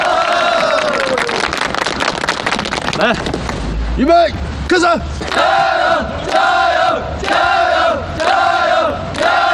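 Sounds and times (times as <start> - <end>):
audience applause: 0.0 - 3.5
speech: 3.0 - 3.4, 4.0 - 9.4.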